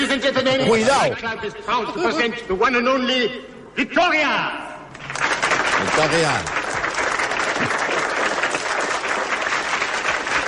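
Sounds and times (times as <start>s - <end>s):
speech: 0.1s - 4.7s, 5.8s - 6.6s
timid crowd applause: 4.9s - 10.4s.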